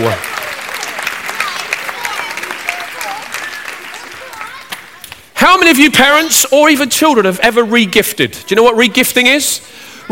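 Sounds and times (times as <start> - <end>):
speech: 0.0 - 0.3, 5.5 - 10.1
audience clapping: 0.0 - 5.4.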